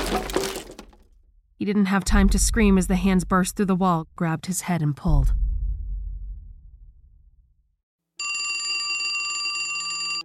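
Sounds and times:
speech: 0:01.6 - 0:05.5
low rumble: 0:02.1 - 0:07.7
telephone bell ringing: 0:08.2 - 0:10.2.

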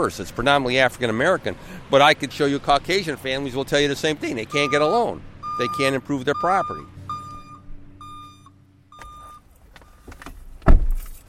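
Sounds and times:
speech: 0:00.0 - 0:07.0
car chime beeps: 0:04.5 - 0:10.0.

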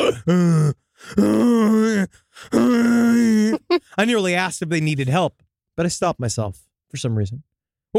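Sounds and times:
speech: 0:00.0 - 0:02.9, 0:04.0 - 0:07.9
person groaning inside a toilet stall: 0:00.0 - 0:03.8.

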